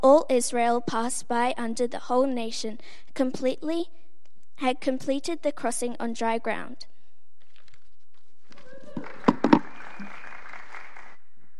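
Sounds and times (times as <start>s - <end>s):
speech: 0.0s - 4.0s, 4.6s - 6.9s
scattered audience claps: 8.5s - 11.2s.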